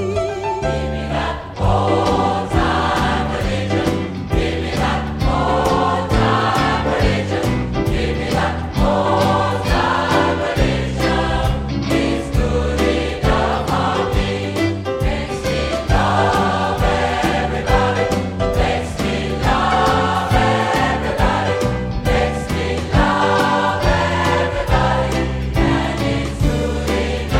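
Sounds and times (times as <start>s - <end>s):
gospel choir singing old-time religious music: 0.1s - 27.3s.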